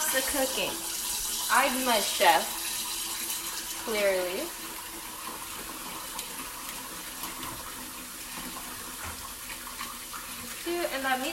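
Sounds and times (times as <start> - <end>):
cold tap water running: 0.0 - 11.3
speech: 0.1 - 2.6, 3.9 - 4.7, 10.6 - 11.3.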